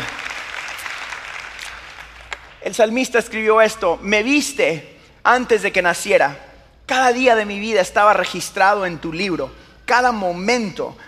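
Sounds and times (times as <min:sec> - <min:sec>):
audience applauding: 0:00.0 - 0:02.6
speech: 0:02.6 - 0:11.0.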